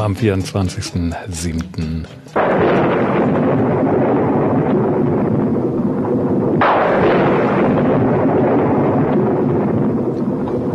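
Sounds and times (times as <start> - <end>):
speech: 0.0 - 3.9
thunder rumbling: 2.3 - 10.7.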